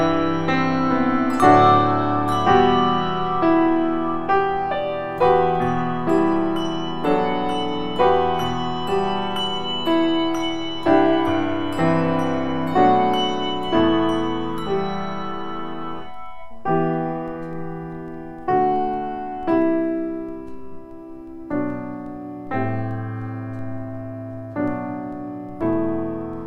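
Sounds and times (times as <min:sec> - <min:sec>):
bells: 0:00.0 - 0:20.8
piano: 0:00.0 - 0:26.4.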